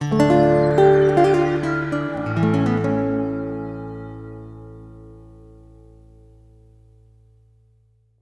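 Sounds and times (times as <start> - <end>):
lyrical lute melody: 0.0 - 6.0.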